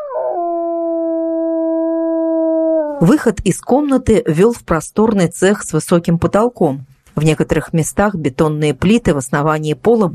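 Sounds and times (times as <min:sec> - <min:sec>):
dog howling loudly from below in an old industrial building: 0:00.0 - 0:03.0
speech: 0:03.0 - 0:10.1.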